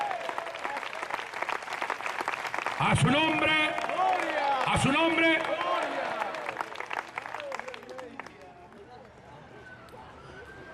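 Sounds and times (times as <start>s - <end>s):
audience applauding: 0.0s - 8.6s
speech: 2.8s - 3.7s.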